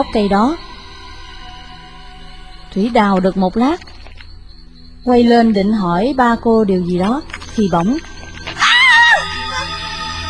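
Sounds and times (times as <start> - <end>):
speech: 0.0 - 0.7, 2.7 - 3.9, 5.0 - 8.1
woman screaming in fear: 8.6 - 9.8.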